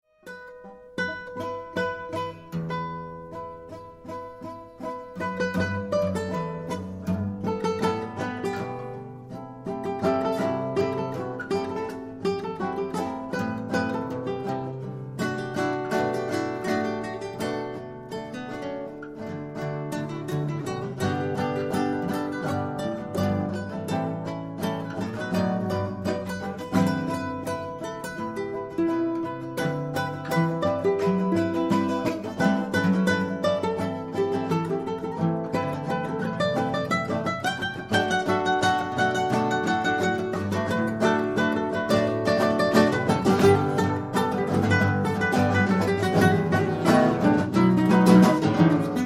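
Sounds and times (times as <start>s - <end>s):
trio improvising: 0.2s - 49.0s.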